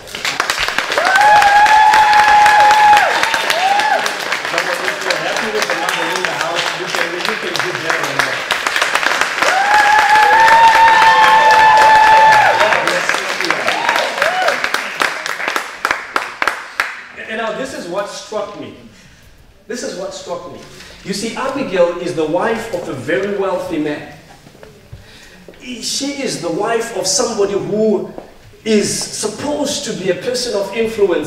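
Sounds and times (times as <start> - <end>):
audience applause: 0.0 - 17.1
speech: 20.3 - 24.1, 25.8 - 31.2.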